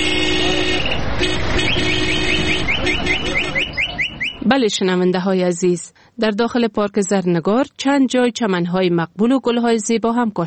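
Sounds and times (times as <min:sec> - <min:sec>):
car horns outside park: 0:00.0 - 0:04.5
street noise outside park: 0:00.0 - 0:10.4
speech: 0:04.5 - 0:10.4.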